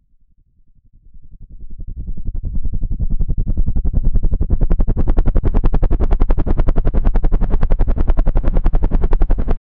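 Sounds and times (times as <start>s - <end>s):
helicopter flying over: 2.3s - 9.6s.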